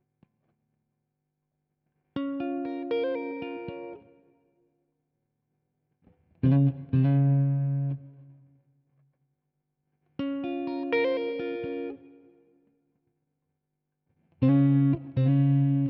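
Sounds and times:
guitar chords and melodies in A sharp minor: 2.2s - 4.3s, 6.4s - 8.4s, 10.2s - 12.7s, 14.4s - 15.8s.

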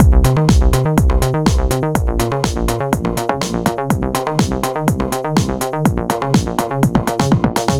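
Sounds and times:
nu dance electro music loops: 0.0s - 7.7s.

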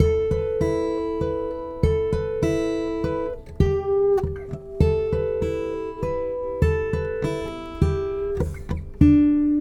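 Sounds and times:
guitar playing: 0.0s - 9.5s.

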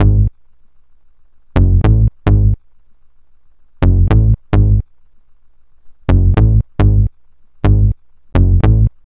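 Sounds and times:
clipper bass: 0.0s - 0.4s, 1.6s - 2.6s, 3.8s - 4.9s, 6.1s - 9.0s.

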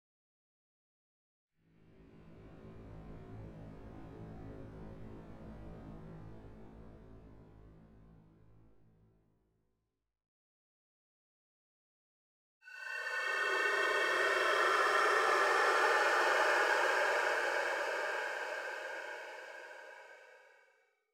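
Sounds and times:
sweeping: 12.7s - 20.6s.

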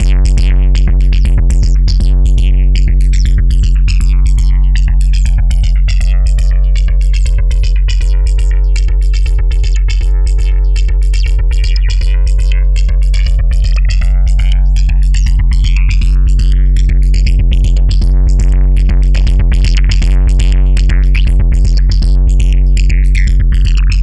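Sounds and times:
processed percussion: 0.0s - 24.0s.

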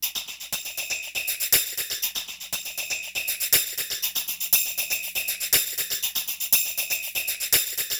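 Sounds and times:
tambourine loop: 0.0s - 7.9s.

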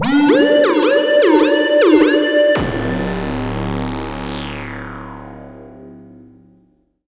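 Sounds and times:
synth glide: 0.0s - 5.4s.

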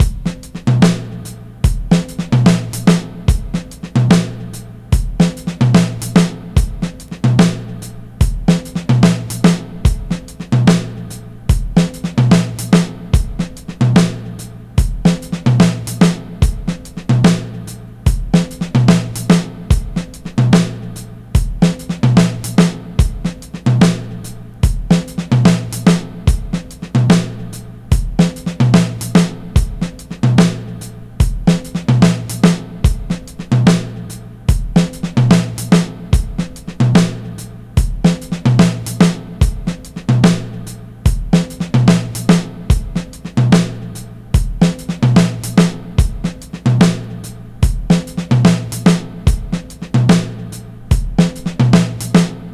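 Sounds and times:
breakbeat: 0.0s - 52.4s
snappy tom drum: 0.0s - 52.5s.

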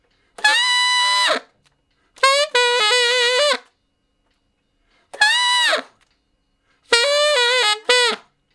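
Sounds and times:
tenor saxophone playing straight R&B: 0.4s - 1.6s, 2.2s - 3.7s, 5.2s - 6.0s, 6.9s - 8.3s.

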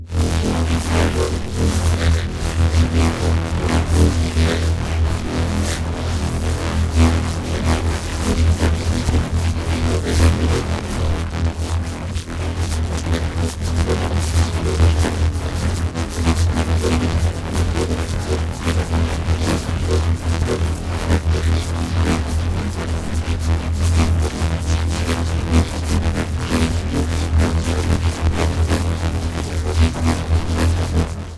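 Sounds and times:
granulated bass in E: 0.0s - 31.3s.

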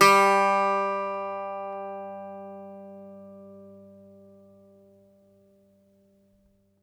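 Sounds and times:
Greek bazouki plucked strings: 0.0s - 4.5s.

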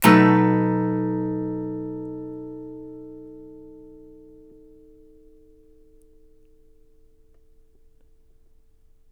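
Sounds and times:
blues guitar chords: 0.0s - 6.4s.

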